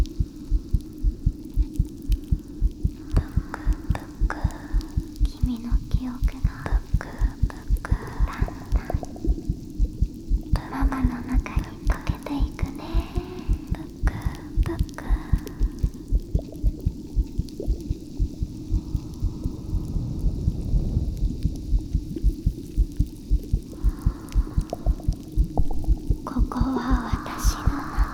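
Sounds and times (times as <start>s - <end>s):
carbonated drink fizzing: 0.0s - 28.1s
heartbeat: 0.0s - 28.1s
person whispering: 3.0s - 9.4s, 10.6s - 16.0s, 23.7s - 25.3s, 26.2s - 28.1s.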